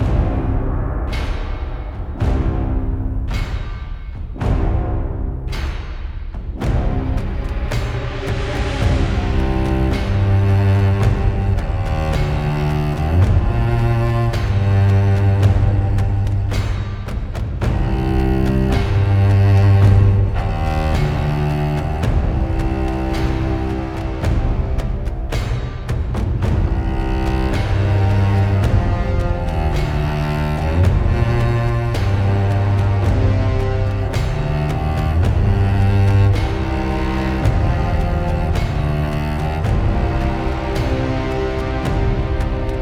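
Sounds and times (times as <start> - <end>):
background music: 0.0 - 42.7.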